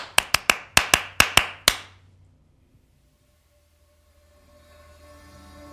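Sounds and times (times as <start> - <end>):
sharp hand claps: 0.0 - 2.0.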